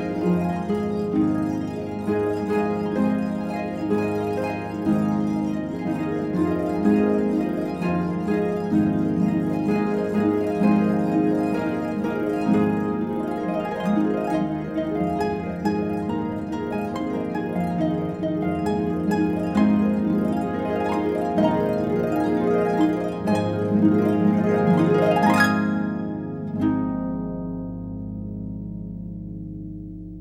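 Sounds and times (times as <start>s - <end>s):
instrumental harp praise music: 0.0s - 30.1s.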